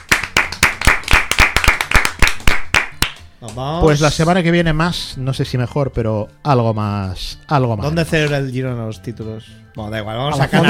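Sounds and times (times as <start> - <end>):
applause: 0.0 - 3.3
speech: 3.4 - 10.6.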